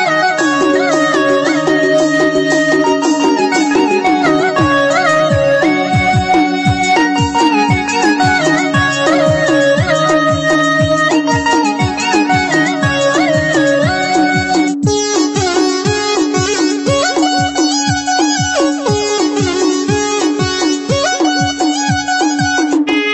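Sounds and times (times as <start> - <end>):
Navratri instrumental ringtone: 0.1 - 23.0.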